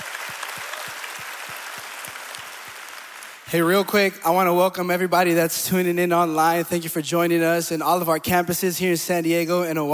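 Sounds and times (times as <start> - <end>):
audience applause: 0.0 - 3.5
speech: 3.5 - 9.9.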